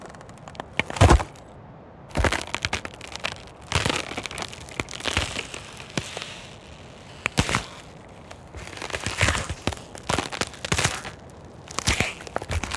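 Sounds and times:
ice cracking and crunching: 0:00.0 - 0:01.5, 0:02.1 - 0:12.7
low steady hiss: 0:00.0 - 0:12.7.

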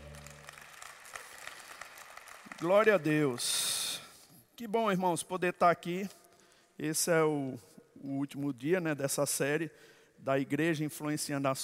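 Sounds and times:
crowd applauding: 0:00.0 - 0:03.4
speech: 0:02.6 - 0:03.7, 0:04.6 - 0:06.2, 0:06.8 - 0:11.6.

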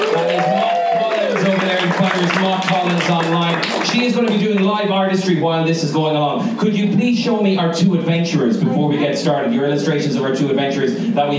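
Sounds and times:
audience applause: 0:00.0 - 0:04.9
speech: 0:02.5 - 0:11.3.

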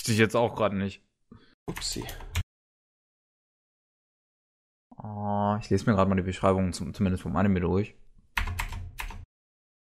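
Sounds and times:
speech: 0:00.0 - 0:01.1, 0:01.7 - 0:02.3, 0:05.0 - 0:08.0
typing a web search on a computer keyboard: 0:01.7 - 0:02.4, 0:08.3 - 0:09.3.

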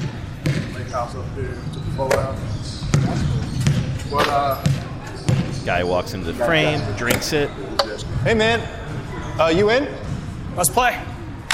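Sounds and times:
basketball bouncing on a gym floor in a 5-Hour Energy ad: 0:00.0 - 0:00.9, 0:02.8 - 0:05.6
steady low murmur with voices: 0:00.0 - 0:11.5
speech: 0:00.9 - 0:03.5, 0:04.1 - 0:04.8, 0:05.6 - 0:08.8, 0:09.4 - 0:10.0, 0:10.6 - 0:11.1.

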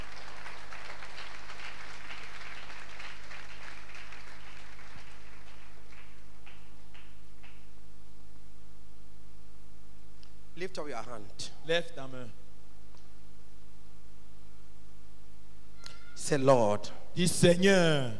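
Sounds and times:
audience clapping: 0:00.0 - 0:07.7
speech: 0:10.6 - 0:12.4, 0:16.2 - 0:18.1.

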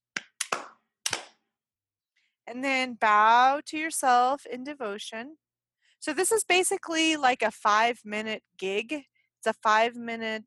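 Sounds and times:
hand claps: 0:00.1 - 0:01.4
speech: 0:02.5 - 0:05.4, 0:06.0 - 0:10.4.

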